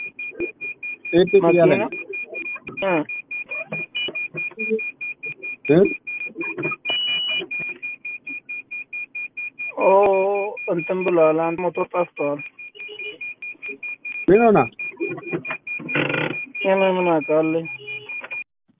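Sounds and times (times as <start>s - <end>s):
electronic alarm beeping: 0.0s - 18.5s
speech: 1.1s - 2.0s, 2.8s - 3.2s, 4.7s - 4.9s, 5.7s - 6.0s, 10.7s - 12.5s, 14.3s - 15.5s, 16.7s - 17.8s.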